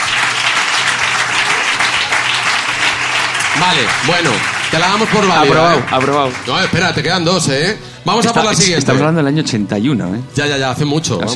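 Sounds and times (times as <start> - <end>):
audience applause: 0.0 - 7.7
speech: 3.6 - 11.3.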